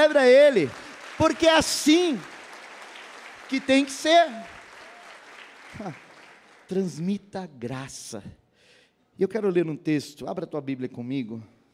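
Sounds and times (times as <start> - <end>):
speech: 0.0 - 2.3, 3.5 - 4.6, 5.7 - 6.0, 6.7 - 8.4, 9.2 - 11.5
audience applauding: 0.0 - 7.0.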